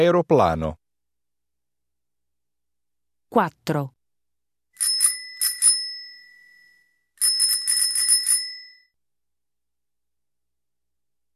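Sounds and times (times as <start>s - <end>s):
speech: 0.0s - 0.8s, 3.3s - 4.0s
bicycle bell ringing: 4.8s - 9.0s.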